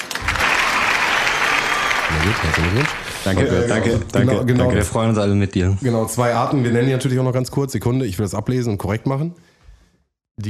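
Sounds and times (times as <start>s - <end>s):
applause sound effect: 0.0s - 3.6s
speech: 2.2s - 9.5s.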